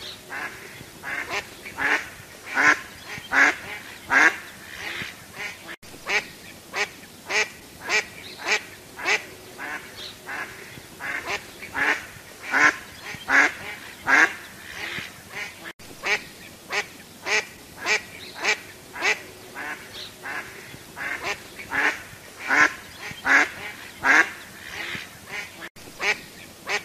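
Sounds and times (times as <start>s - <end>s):
duck quacking: 0.0s - 26.8s.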